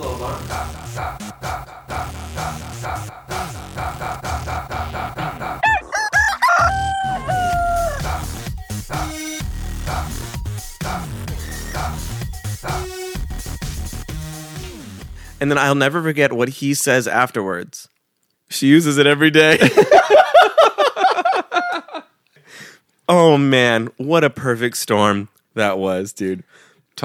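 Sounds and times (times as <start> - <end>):
rhythmic looping backdrop: 0.0 - 15.4
speech: 0.2 - 1.3, 15.4 - 17.9, 18.5 - 20.2, 23.1 - 27.0
rooster crow alarm clock: 5.6 - 8.1
laughter: 19.5 - 22.1.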